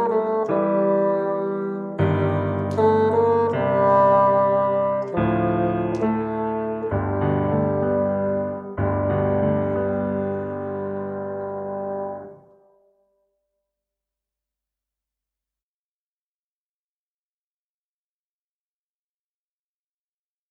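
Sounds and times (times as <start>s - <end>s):
bassoon: 0.0s - 13.0s.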